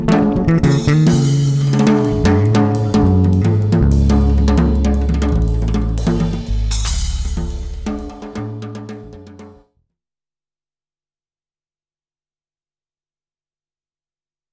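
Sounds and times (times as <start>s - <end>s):
duet: 0.0s - 8.1s.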